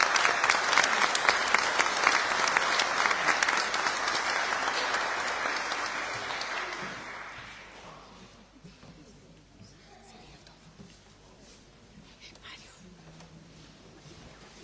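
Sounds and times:
audience applauding: 0:00.0 - 0:07.9.

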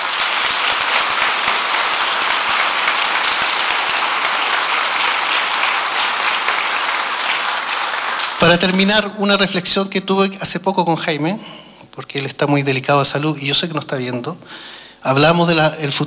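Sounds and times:
crowd applause: 0:00.0 - 0:08.8
speech: 0:08.5 - 0:16.0.

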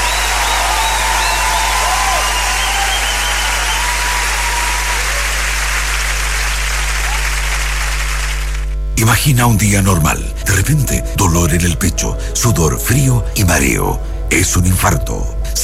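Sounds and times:
audience applause: 0:00.0 - 0:08.8
speech: 0:09.0 - 0:15.6.

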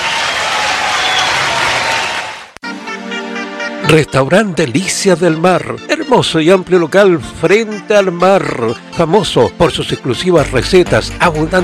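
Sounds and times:
audience applause: 0:00.0 - 0:02.6
speech: 0:03.9 - 0:11.6.

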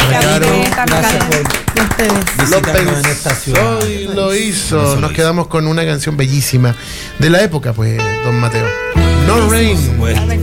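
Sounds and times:
audience applause: 0:00.0 - 0:04.0
speech: 0:02.0 - 0:10.4.

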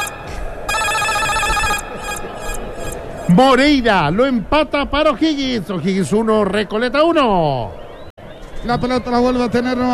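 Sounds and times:
electronic goal alarm jingle on sports radio: 0:00.0 - 0:03.0
speech: 0:03.3 - 0:07.8, 0:08.6 - 0:09.9.

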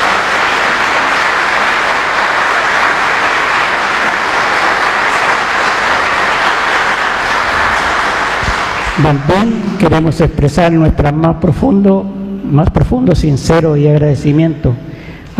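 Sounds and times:
audience applause: 0:00.0 - 0:09.6
speech: 0:09.0 - 0:15.3.

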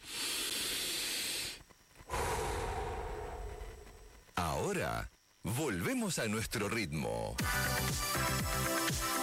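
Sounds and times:
long deep inhale and slower fuller exhale: 0:00.0 - 0:04.2
speech: 0:04.6 - 0:09.1.

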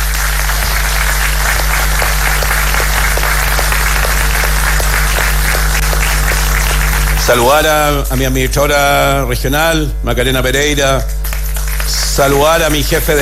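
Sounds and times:
audience applause: 0:00.0 - 0:07.8, 0:11.1 - 0:13.2
speech: 0:07.3 - 0:11.2, 0:11.9 - 0:13.2.

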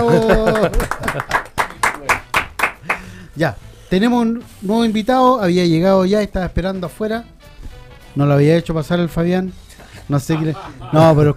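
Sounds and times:
speech: 0:00.0 - 0:01.4, 0:03.4 - 0:07.3, 0:08.2 - 0:11.3
laughter: 0:00.0 - 0:01.6, 0:10.2 - 0:11.3
audience applause: 0:00.0 - 0:03.1.

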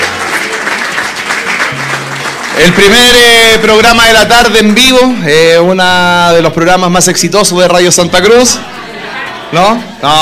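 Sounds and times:
applause: 0:00.0 - 0:04.2
speech: 0:02.6 - 0:08.8, 0:09.5 - 0:10.2.

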